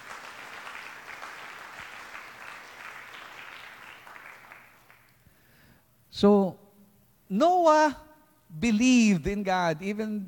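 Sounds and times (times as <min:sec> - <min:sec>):
congregation applauding during a church service: 0:00.0 - 0:05.2
speech: 0:06.2 - 0:06.6, 0:07.3 - 0:10.2.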